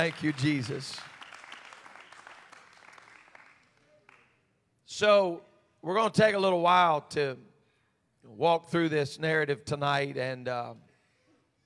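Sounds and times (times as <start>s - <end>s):
speech: 0.0s - 1.1s, 4.9s - 7.5s, 8.2s - 10.8s
audience clapping: 0.0s - 4.4s.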